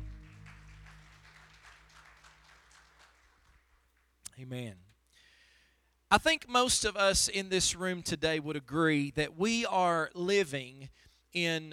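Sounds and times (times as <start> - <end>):
low sustained hum: 0.0 - 1.2
audience hand clapping: 0.0 - 4.2
speech: 4.4 - 4.9, 6.1 - 11.7.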